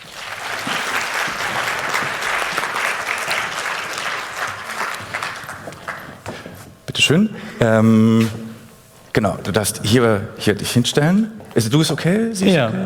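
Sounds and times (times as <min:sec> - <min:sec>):
audience applause: 0:00.0 - 0:06.5
speech: 0:07.0 - 0:08.4, 0:09.2 - 0:12.8.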